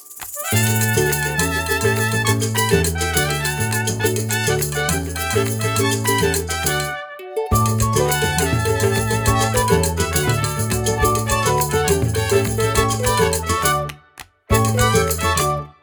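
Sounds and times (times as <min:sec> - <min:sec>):
trumpet: 0:00.3 - 0:15.8.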